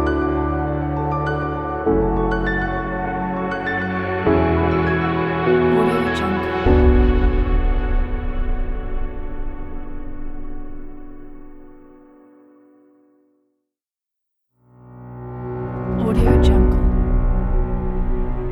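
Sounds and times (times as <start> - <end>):
inspiring beautiful cinematic music: 0.0 - 11.9, 15.5 - 18.4.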